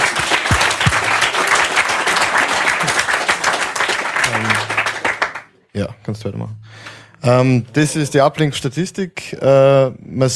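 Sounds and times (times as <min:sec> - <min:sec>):
audience applause: 0:00.0 - 0:05.5
speech: 0:05.8 - 0:06.6, 0:07.2 - 0:10.3.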